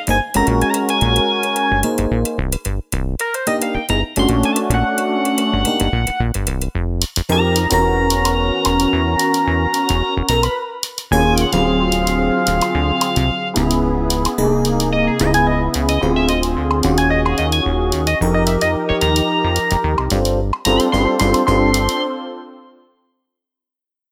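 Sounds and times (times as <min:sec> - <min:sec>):
funk in seven-four on electronic drums: 0:00.0 - 0:22.0.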